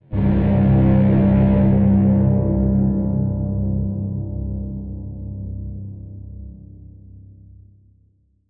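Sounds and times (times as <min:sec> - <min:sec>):
danger music flourish: 0:00.1 - 0:04.8.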